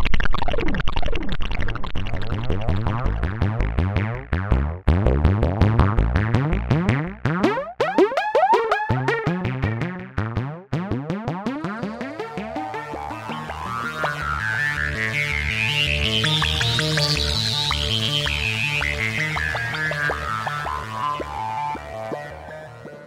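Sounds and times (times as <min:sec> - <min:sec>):
synth: 0:00.2 - 0:23.0.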